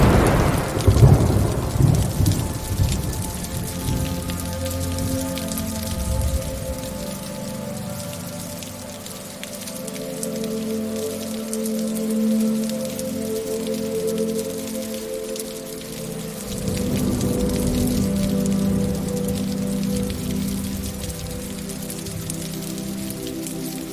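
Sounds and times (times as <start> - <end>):
gentle pitter-patter of raindrops: 0.0 - 23.9.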